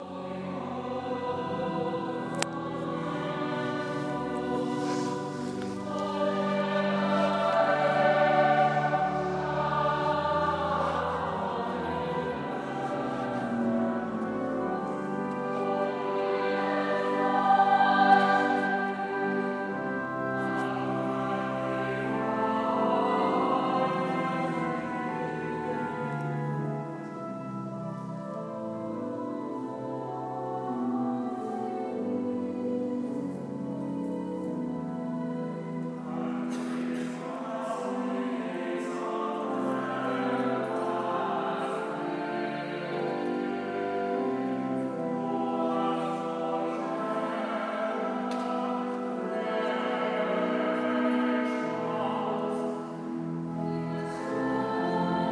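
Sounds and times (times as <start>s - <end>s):
choir practicing in Norwich Cathedral: 0.0s - 55.3s.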